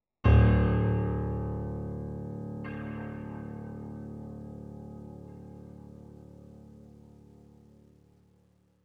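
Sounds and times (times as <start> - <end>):
piano one shot: 0.2 - 6.7.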